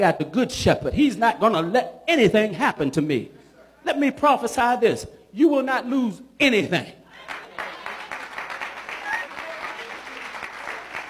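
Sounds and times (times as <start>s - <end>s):
speech: 0.0s - 7.0s
crowd clapping: 7.2s - 11.0s
crowd whoops: 8.9s - 10.0s.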